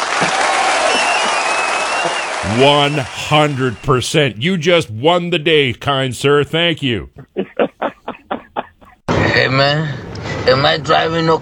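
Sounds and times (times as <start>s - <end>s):
crowd applauding: 0.0s - 4.4s
laughter: 0.1s - 9.3s
speech: 2.0s - 7.4s, 9.4s - 11.3s.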